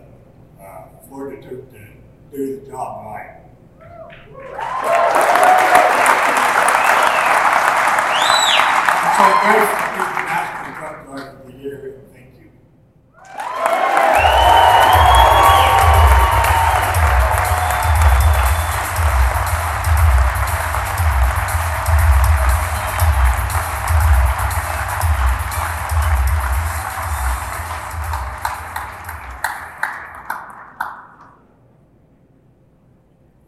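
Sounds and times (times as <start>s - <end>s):
speech: 0.9s - 4.9s, 9.2s - 9.8s
audience clapping: 4.3s - 11.3s, 13.2s - 31.5s
cheering and whistles: 4.4s - 10.0s, 13.2s - 23.8s.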